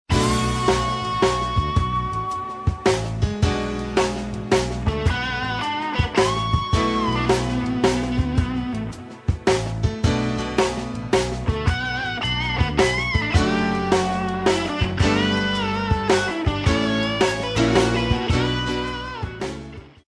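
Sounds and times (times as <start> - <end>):
blues music: 0.1 - 20.0.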